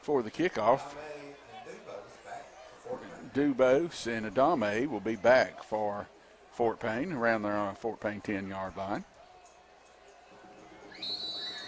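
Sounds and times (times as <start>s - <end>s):
speech: 0.0s - 1.1s, 2.9s - 9.1s
referee's whistle before kickoff: 10.9s - 11.6s.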